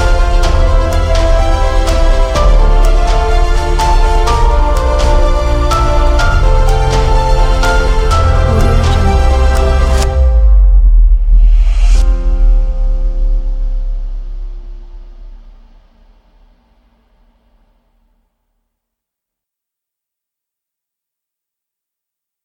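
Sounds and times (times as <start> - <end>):
inspiring motivational music: 0.0 - 15.3.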